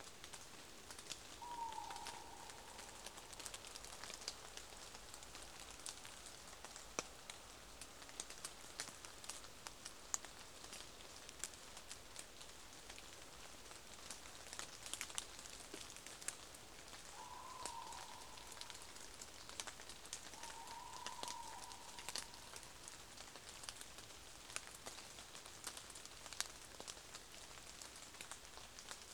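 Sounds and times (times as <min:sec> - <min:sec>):
rain in the Crecy forest: 0:00.0 - 0:29.1
owl calling in the Crecy forest: 0:01.4 - 0:04.2, 0:17.0 - 0:22.8.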